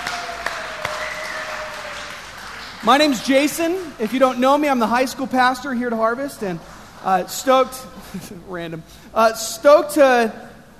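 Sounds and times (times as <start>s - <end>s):
audience clapping at a church youth service: 0.0s - 4.8s
speech: 2.8s - 10.5s.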